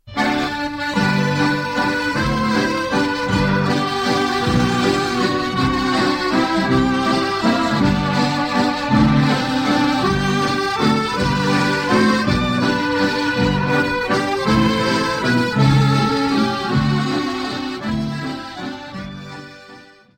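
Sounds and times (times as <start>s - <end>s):
Scottish schottische waltz music: 0.0s - 20.1s.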